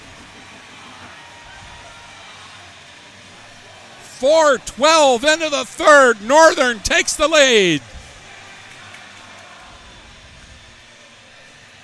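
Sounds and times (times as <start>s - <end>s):
hockey arena crowd roaring and cheering: 4.1s - 7.8s
speech: 4.2s - 7.9s.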